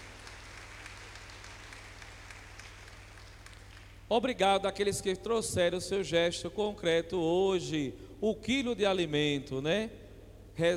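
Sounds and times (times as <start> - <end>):
audience applause: 0.0 - 4.0
speech: 4.1 - 10.0, 10.6 - 10.7.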